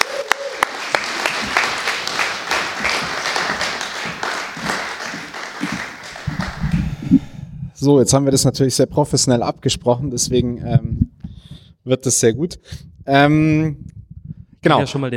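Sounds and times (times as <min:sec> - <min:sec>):
audience applause: 0:00.0 - 0:07.3
speech: 0:07.8 - 0:14.0, 0:14.6 - 0:15.1.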